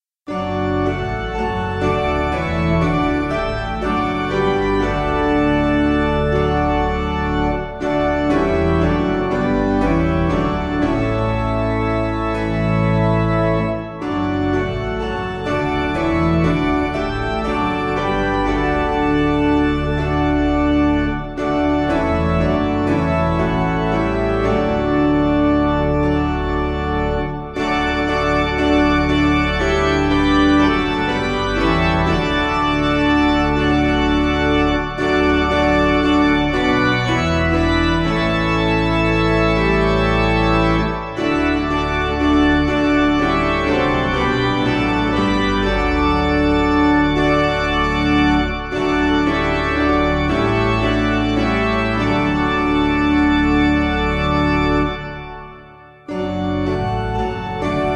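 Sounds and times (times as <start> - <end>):
piano backing music: 0.3 - 57.9.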